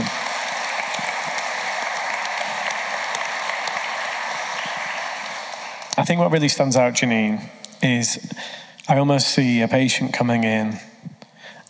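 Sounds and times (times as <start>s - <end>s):
audience applause: 0.0s - 7.2s
speech: 6.0s - 10.9s.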